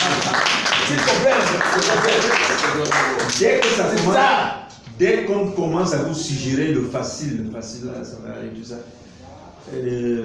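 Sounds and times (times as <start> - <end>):
audience applause: 0.0 - 4.0
speech: 0.9 - 10.2.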